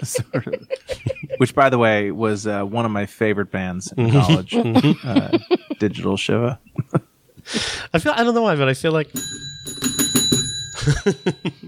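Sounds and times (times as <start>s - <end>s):
laughter: 0.0s - 1.6s, 4.0s - 5.8s, 10.8s - 11.6s
speech: 0.0s - 6.7s, 7.4s - 9.4s, 10.8s - 11.6s
small bell rung on a podcast: 9.2s - 11.6s.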